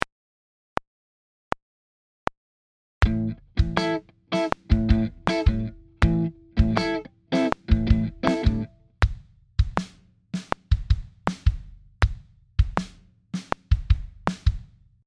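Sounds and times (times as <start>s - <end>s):
kick and snare drum groove: 3.0s - 15.0s.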